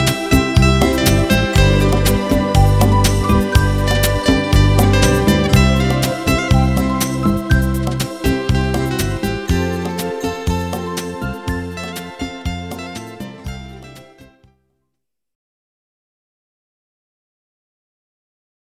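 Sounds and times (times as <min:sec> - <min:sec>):
glockenspiel: 0:00.0 - 0:14.2.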